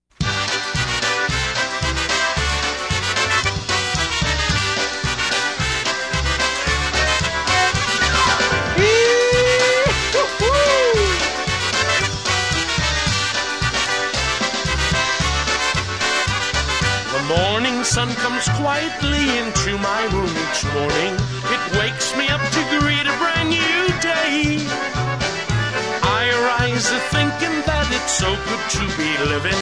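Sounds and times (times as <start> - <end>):
polka music: 0.1 - 29.6.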